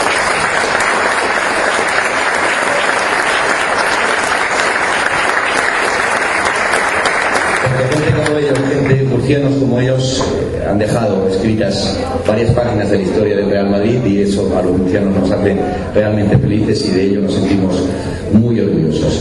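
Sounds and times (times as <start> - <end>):
audience applause: 0.0 - 9.2
speech: 7.9 - 19.1.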